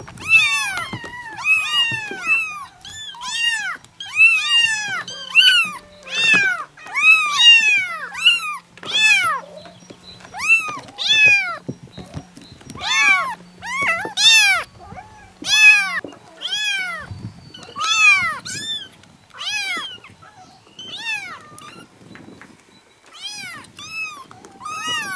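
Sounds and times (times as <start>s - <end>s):
kittens meowing: 0.2s - 9.5s, 10.3s - 11.6s, 12.8s - 21.9s, 23.1s - 25.1s.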